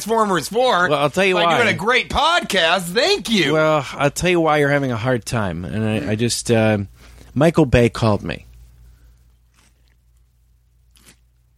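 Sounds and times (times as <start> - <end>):
speech: 0.0 - 8.5
chewing snap peas: 9.3 - 11.5.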